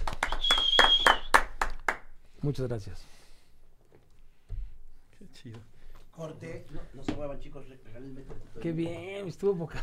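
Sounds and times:
applause: 0.0s - 2.2s
speech: 2.4s - 3.2s, 5.3s - 9.8s.

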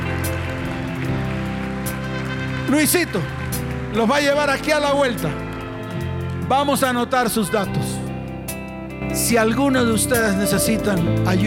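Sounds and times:
audience applause: 0.0s - 7.2s
speech: 2.7s - 5.4s, 6.5s - 8.0s, 9.0s - 11.4s.

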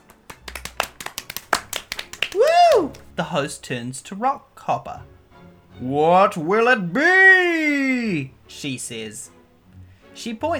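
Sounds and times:
audience clapping: 0.0s - 3.5s
speech: 3.2s - 5.2s, 5.8s - 9.4s, 10.2s - 10.5s.

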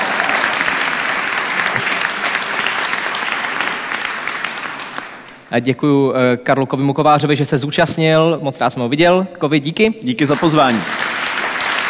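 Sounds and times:
audience applause: 0.0s - 5.4s, 10.3s - 11.8s
speech: 5.5s - 11.0s.

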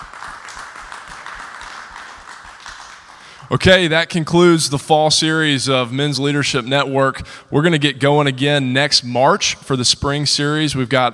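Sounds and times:
audience applause: 0.0s - 3.5s
speech: 3.5s - 11.1s.

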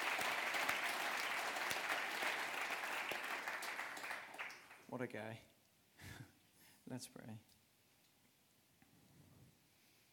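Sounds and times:
round of applause: 0.0s - 5.3s
speech: 4.9s - 5.5s, 6.9s - 7.6s.

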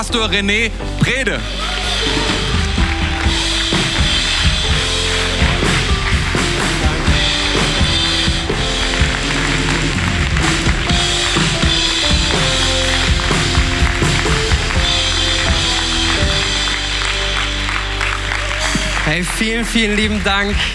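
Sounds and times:
speech: 0.0s - 2.3s, 19.1s - 20.7s
audience applause: 1.0s - 20.7s.

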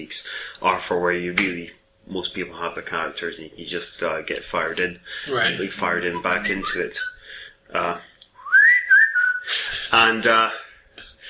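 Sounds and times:
speech: 0.0s - 8.1s, 9.5s - 10.6s
breaths: 0.2s - 0.6s, 5.0s - 5.3s, 7.2s - 7.6s
phone whistle notification tone: 5.5s - 7.2s.

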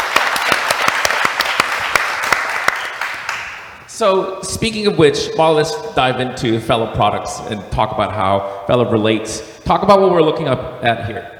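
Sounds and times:
audience applause: 0.0s - 3.7s
speech: 4.0s - 11.3s.

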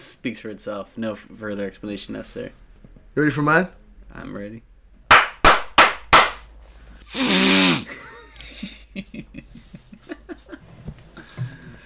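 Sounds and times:
speech: 0.2s - 4.7s
sharp loud slaps: 5.1s - 6.5s
harsh noisy vocal burst: 7.1s - 7.9s.

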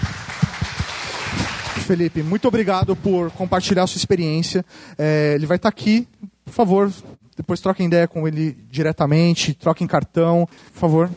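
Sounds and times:
audience applause: 0.0s - 2.8s
speech: 1.9s - 11.1s.

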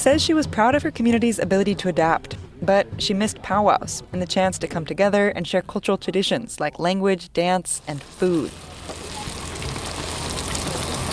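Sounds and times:
speech: 0.0s - 9.0s
fresh fry bread sizzling in pans of cooking oil: 7.8s - 11.1s.

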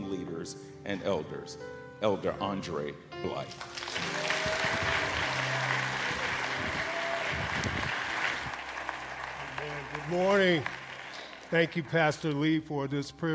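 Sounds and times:
speech: 0.4s - 3.9s, 10.1s - 10.8s, 11.5s - 13.3s
round of applause: 3.6s - 12.4s.

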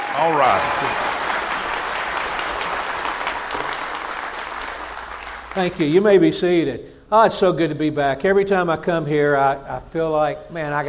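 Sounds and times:
Baptist church congregation applauding a guest speaker: 0.0s - 6.1s
speech: 0.2s - 1.2s, 5.6s - 10.8s.

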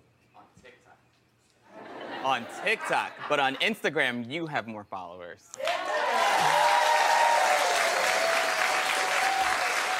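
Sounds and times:
laughter: 1.7s - 3.8s
speech: 2.2s - 6.8s
audience applause: 5.6s - 9.9s.

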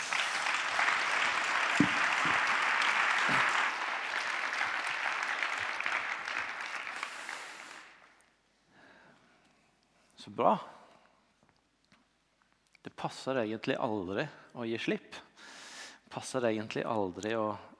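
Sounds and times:
audience applause: 0.0s - 8.1s
speech: 10.3s - 10.8s, 13.0s - 15.2s, 16.2s - 17.7s.

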